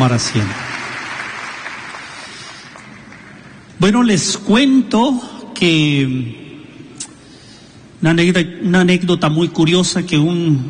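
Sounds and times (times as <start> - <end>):
speech: 0.0 - 0.8, 3.8 - 6.4, 8.0 - 10.6
church congregation applauding after a prayer: 0.0 - 3.7.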